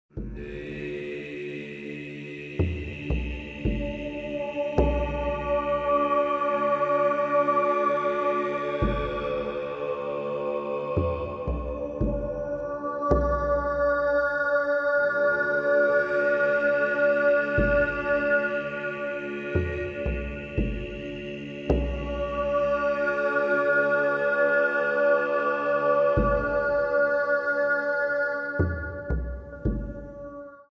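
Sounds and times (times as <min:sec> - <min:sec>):
ancient world lament music: 0:00.1 - 0:30.5.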